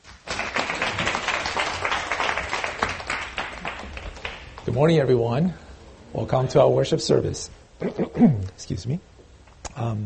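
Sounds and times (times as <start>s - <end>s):
church congregation applauding to welcome the pastor: 0.0s - 4.8s
speech: 4.7s - 9.1s, 9.8s - 10.0s.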